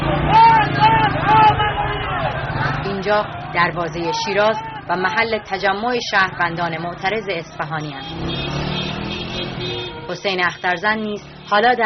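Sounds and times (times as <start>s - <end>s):
protest crowd slogans: 0.0s - 5.8s
motorcycles among a protest crowd: 0.0s - 11.8s
speech: 3.1s - 8.6s, 9.6s - 11.8s.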